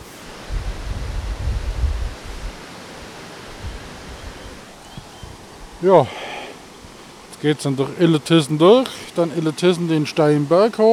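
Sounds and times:
river rapids rushing: 2.2s - 10.9s
speech: 5.8s - 6.3s, 7.4s - 10.9s.

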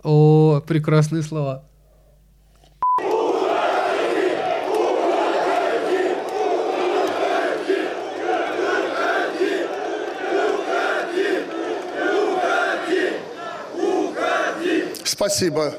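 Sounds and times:
speech: 0.0s - 1.7s, 15.2s - 15.7s
crowd shouting and chanting in unison: 3.0s - 15.4s.

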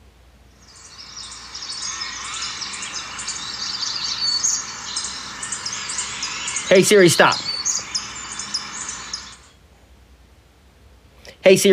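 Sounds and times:
dense overlapping birdsong in a forest: 0.6s - 9.5s
speech: 6.7s - 7.5s, 11.4s - 11.7s.

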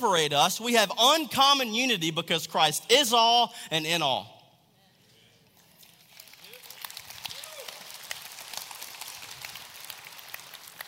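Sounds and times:
speech: 0.0s - 4.4s
audience clapping: 5.6s - 10.8s.

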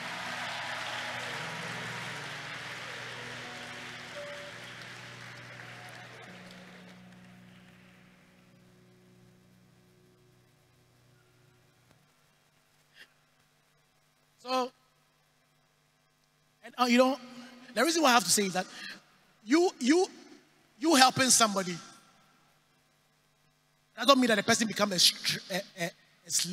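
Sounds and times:
audience clapping: 0.0s - 9.0s
low steady hum: 0.0s - 26.5s
speech: 14.4s - 14.8s, 16.8s - 20.2s, 20.8s - 21.9s, 24.0s - 26.5s.

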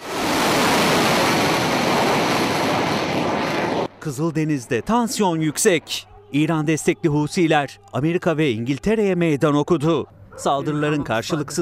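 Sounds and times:
cruise missile launching from a warship: 0.0s - 3.9s
speech: 4.1s - 11.6s.

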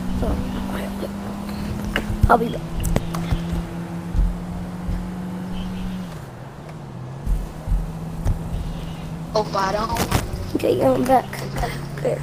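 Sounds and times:
video game car engine accelerating: 0.0s - 12.2s
speech: 0.2s - 1.2s, 2.0s - 2.7s, 9.4s - 12.2s
dull thumps: 1.6s - 6.2s, 7.1s - 9.2s.

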